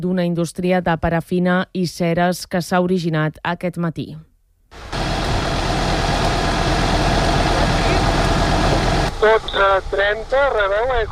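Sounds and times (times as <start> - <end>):
speech: 0.0 - 4.9, 9.2 - 11.0
fire engines running at a firefighting scene: 4.8 - 10.4.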